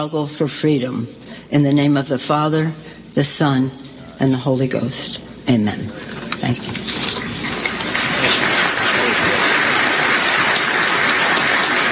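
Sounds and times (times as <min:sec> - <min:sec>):
speech: 0:00.0 - 0:07.0
audience applause: 0:07.1 - 0:11.9.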